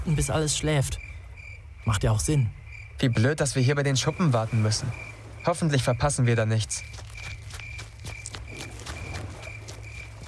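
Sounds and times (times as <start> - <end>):
speech: 0.1 - 1.1, 1.8 - 7.0
footsteps of someone running away: 6.6 - 10.2.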